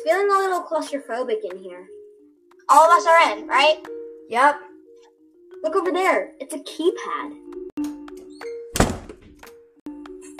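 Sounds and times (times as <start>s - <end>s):
speech: 0.0s - 2.0s, 2.7s - 4.7s, 5.6s - 8.0s
steady tonal music: 0.0s - 10.3s
closet door closing by itself: 8.7s - 9.4s.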